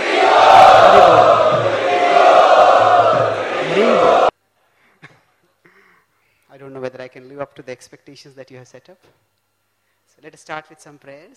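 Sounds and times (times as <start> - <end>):
audience chanting loudly to welcome a speaker at a devotional evening gathering: 0.0 - 4.3
speech: 7.6 - 9.4, 10.2 - 11.3.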